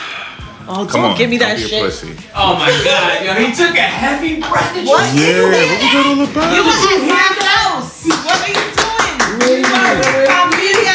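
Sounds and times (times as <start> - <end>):
speech: 0.7 - 8.7, 9.4 - 10.9
hand clapping: 6.4 - 10.9.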